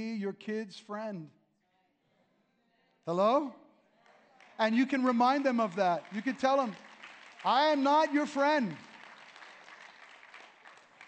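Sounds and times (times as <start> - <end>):
speech: 0.0 - 1.4, 3.1 - 3.6, 4.6 - 6.8, 7.4 - 8.9
audience clapping: 4.0 - 11.0.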